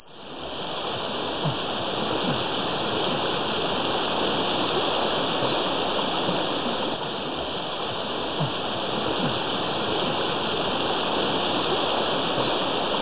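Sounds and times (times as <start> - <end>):
rain: 0.0 - 13.0.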